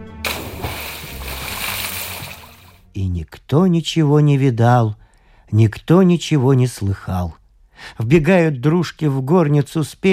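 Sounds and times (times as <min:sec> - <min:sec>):
splash of someone dragged into a river by a clawed creature: 0:00.2 - 0:02.9
speech: 0:03.0 - 0:10.1.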